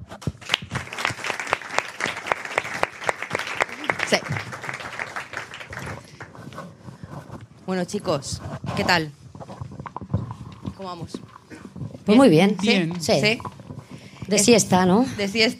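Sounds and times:
audience applause: 0:00.4 - 0:06.4
speech: 0:04.1 - 0:04.5, 0:07.7 - 0:09.2, 0:10.8 - 0:11.3, 0:12.0 - 0:13.5, 0:14.3 - 0:15.5.

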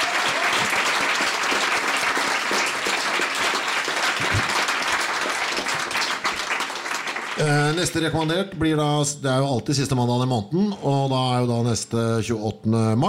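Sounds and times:
sustained audience applause: 0:00.0 - 0:08.2
speech: 0:07.4 - 0:13.0.

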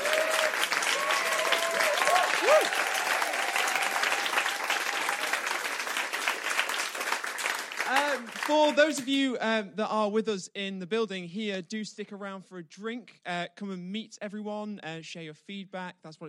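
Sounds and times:
cheers and whoops: 0:00.0 - 0:05.6
audience applause: 0:00.0 - 0:09.0
speech: 0:08.5 - 0:16.2.

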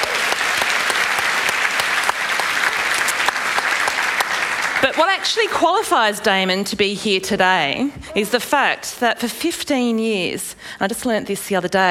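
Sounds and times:
audience applause: 0:00.0 - 0:05.6
speech: 0:04.8 - 0:11.8.

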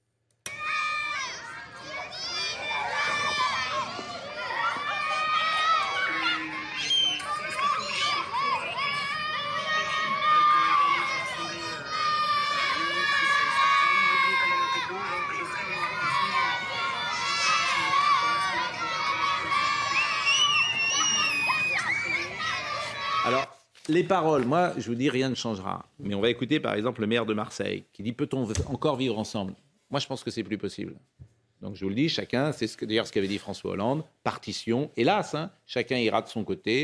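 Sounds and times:
crowd shouting and cheering a name: 0:00.5 - 0:23.5
speech: 0:23.9 - 0:36.8.

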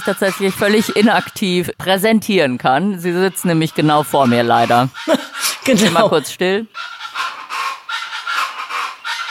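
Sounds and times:
speech: 0:00.0 - 0:07.1
Chaco chachalacas calling in a raucous chorus: 0:00.0 - 0:09.2
laughter: 0:04.3 - 0:06.6.

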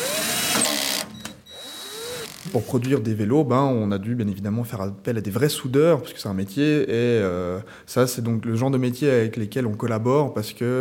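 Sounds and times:
power screwdriver driving screws into aluminium fairings on an electric bike's battery case: 0:00.0 - 0:02.6
speech: 0:02.5 - 0:10.8.

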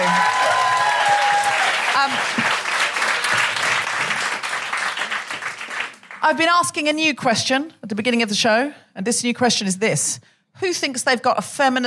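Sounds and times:
audience applause: 0:00.0 - 0:06.2
speech: 0:02.0 - 0:02.4, 0:06.3 - 0:11.8.

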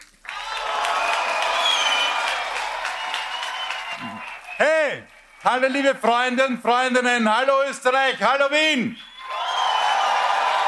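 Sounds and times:
crowd applause and cheering: 0:00.0 - 0:06.1, 0:08.9 - 0:10.6
speech: 0:05.4 - 0:09.1.

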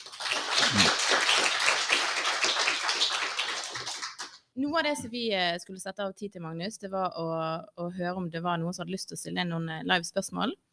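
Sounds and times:
crowd applause: 0:00.0 - 0:04.4
speech: 0:04.6 - 0:10.7.

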